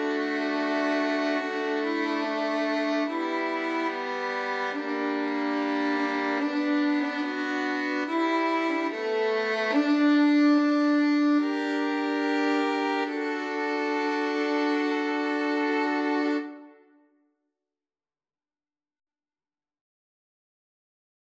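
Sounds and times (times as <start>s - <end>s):
three violins: 0.0s - 16.9s.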